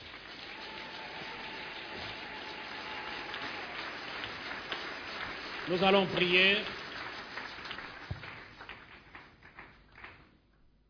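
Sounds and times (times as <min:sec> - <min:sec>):
church congregation applauding: 0:00.0 - 0:10.3
speech: 0:05.7 - 0:06.8.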